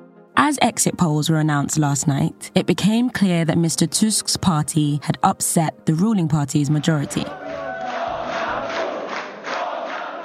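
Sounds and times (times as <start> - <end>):
speech: 0.4 - 7.7
crowd of supporters chanting: 6.6 - 10.2.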